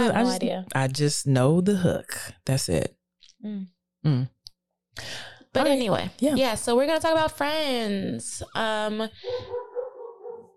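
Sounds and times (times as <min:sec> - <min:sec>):
speech: 0:00.0 - 0:04.4, 0:05.0 - 0:09.6
dog barking: 0:09.3 - 0:10.5.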